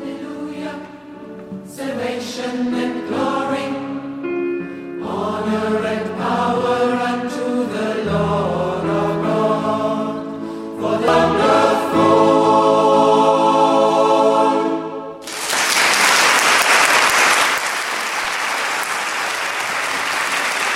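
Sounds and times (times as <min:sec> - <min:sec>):
choir holding a final sustained harmonic chord: 0:00.0 - 0:15.2
live audience applause: 0:15.2 - 0:20.7.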